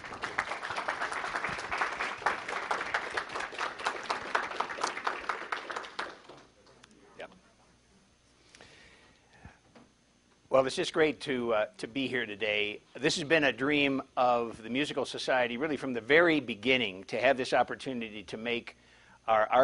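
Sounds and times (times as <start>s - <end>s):
audience applauding a speaker at a Musical Society archive event: 0.0s - 6.5s
speech: 10.6s - 19.6s.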